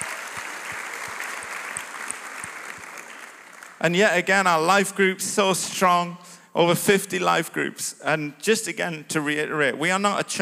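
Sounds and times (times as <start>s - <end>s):
audience applause: 0.0s - 4.4s
speech: 3.8s - 10.4s.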